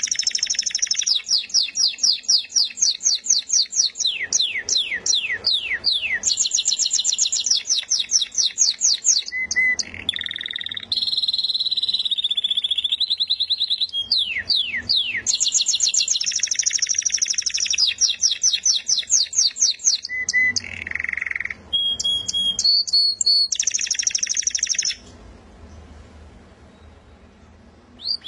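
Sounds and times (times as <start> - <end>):
contest-winning canary singing whistles and buzzy trill: 0.0 - 25.8, 27.9 - 28.2.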